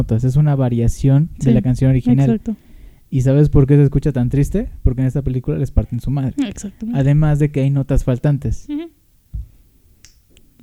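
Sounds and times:
speech: 0:00.0 - 0:08.9
finger snap: 0:10.0 - 0:10.6.

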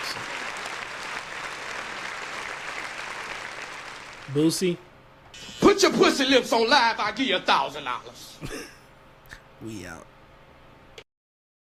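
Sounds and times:
crowd clapping: 0:00.0 - 0:04.6
speech: 0:04.3 - 0:04.9, 0:05.6 - 0:08.8, 0:09.6 - 0:10.1.

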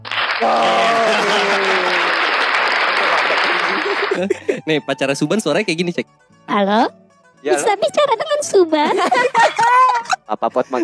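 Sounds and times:
hand clapping applause: 0:00.0 - 0:04.4
speech: 0:00.4 - 0:01.7, 0:04.2 - 0:10.8
laughter: 0:00.4 - 0:04.8, 0:08.7 - 0:10.8.

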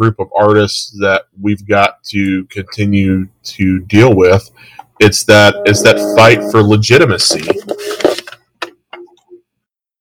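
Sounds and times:
speech: 0:00.0 - 0:08.2
phone vibrating against a wooden desk: 0:05.4 - 0:08.2.

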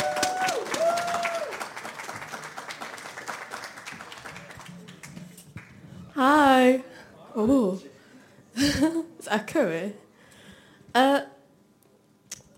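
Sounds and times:
audience applause: 0:00.0 - 0:05.8
speech: 0:06.2 - 0:07.9, 0:09.3 - 0:10.0.

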